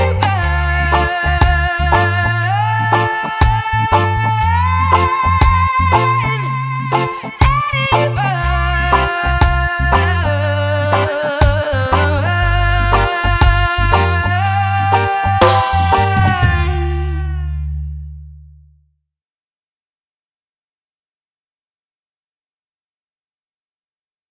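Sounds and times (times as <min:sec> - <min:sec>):
reggae music: 0:00.0 - 0:18.3.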